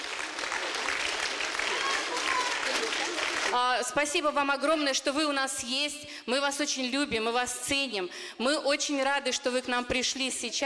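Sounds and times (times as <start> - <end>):
audience applause: 0.0 - 3.6
speech: 3.5 - 10.6.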